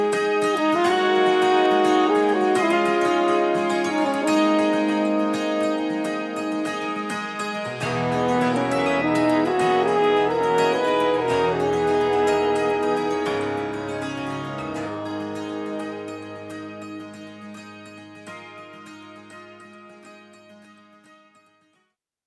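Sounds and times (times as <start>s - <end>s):
horns: 0.0s - 18.8s
dulcimer: 4.7s - 20.9s.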